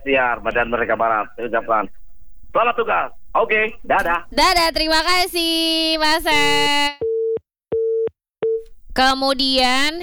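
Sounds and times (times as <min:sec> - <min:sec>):
speech: 0:00.0 - 0:07.1, 0:09.0 - 0:10.0
telephone busy tone after a caller's line drops: 0:06.4 - 0:08.7.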